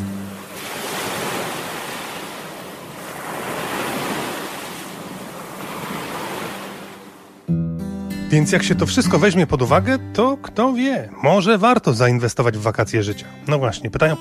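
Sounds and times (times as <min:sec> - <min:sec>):
ocean waves breaking on shore: 0:00.0 - 0:07.5
speech: 0:08.3 - 0:14.1.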